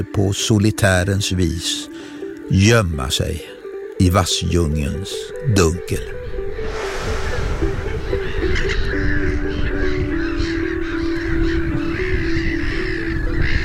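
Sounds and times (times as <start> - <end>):
speech: 0.0 - 6.8
black-headed gull colony calling: 8.1 - 13.6.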